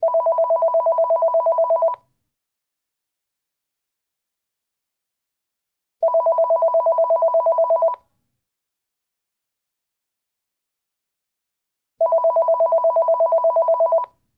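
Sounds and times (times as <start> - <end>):
office phone ringing: 0.0 - 2.0, 6.0 - 8.0, 12.0 - 14.2.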